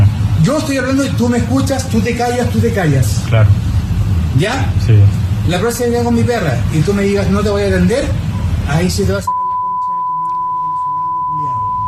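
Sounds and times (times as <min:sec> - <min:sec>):
speech: 0:00.5 - 0:03.7, 0:04.4 - 0:09.4
long beep tone: 0:09.3 - 0:11.8.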